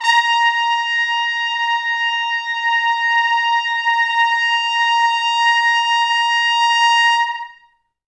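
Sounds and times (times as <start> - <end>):
pop brass note A sharp 4: 0.0 - 7.6.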